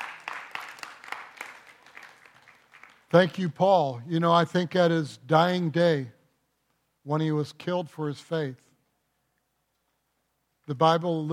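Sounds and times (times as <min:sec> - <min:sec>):
group of people clapping: 0:00.0 - 0:03.9
speech: 0:03.1 - 0:06.2, 0:07.1 - 0:08.7, 0:10.7 - 0:11.3.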